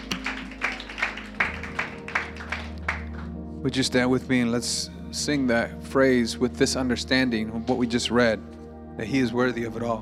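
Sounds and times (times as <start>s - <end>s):
audience clapping: 0.0s - 3.4s
speech: 3.6s - 9.9s.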